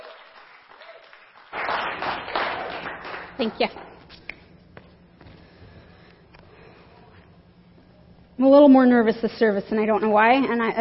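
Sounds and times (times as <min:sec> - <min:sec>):
audience applause: 0:00.0 - 0:03.6
speech: 0:03.4 - 0:03.9, 0:08.4 - 0:10.8.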